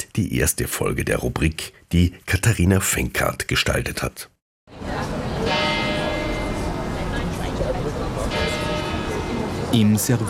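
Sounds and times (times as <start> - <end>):
speech: 0.2 - 5.0, 9.7 - 10.2
church bells ringing in the Servitenviertel in Vienna's 9th district: 5.4 - 10.2.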